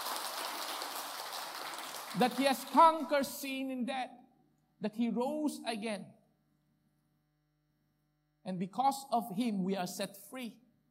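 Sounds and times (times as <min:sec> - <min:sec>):
audience clapping: 0:00.0 - 0:03.2
speech: 0:02.1 - 0:04.2, 0:04.8 - 0:06.2, 0:08.4 - 0:10.6.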